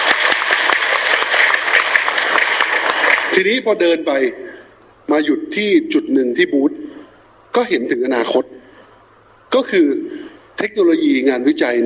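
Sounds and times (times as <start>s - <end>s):
crowd applause: 0.0s - 3.4s
speech: 3.4s - 4.4s, 5.1s - 6.8s, 7.6s - 8.6s, 9.5s - 11.8s.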